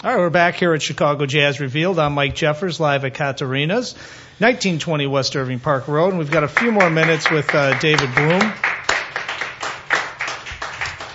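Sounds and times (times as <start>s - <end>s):
speech: 0.0s - 8.7s
audience clapping at a live jazz show at Katarina's in Chicago: 6.3s - 11.1s.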